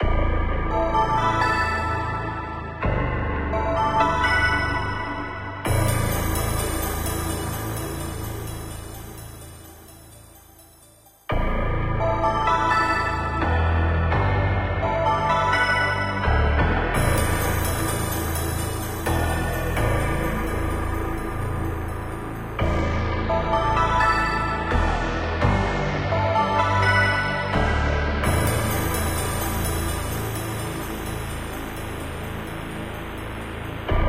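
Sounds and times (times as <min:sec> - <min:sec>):
background music: 0:00.0 - 0:34.0.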